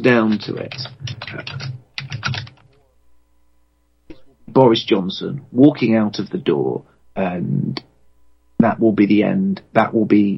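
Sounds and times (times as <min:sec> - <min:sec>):
speech: 0:00.0 - 0:01.8, 0:04.6 - 0:07.9, 0:08.6 - 0:10.3
computer keyboard typing to search Google: 0:00.3 - 0:02.7.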